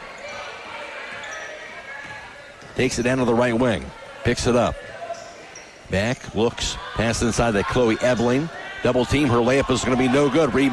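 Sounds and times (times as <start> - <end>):
crowd noise at a high school girls' basketball game: 0.0 - 10.7
basketball dribbled in a high school girls' game: 2.0 - 3.3
speech: 2.8 - 5.0, 5.9 - 10.7.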